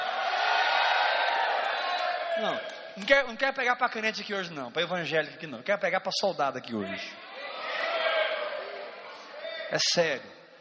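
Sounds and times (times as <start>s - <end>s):
audience shouting a victory cry: 0.0s - 2.9s, 7.2s - 9.6s
speech: 2.4s - 7.2s, 9.7s - 10.4s.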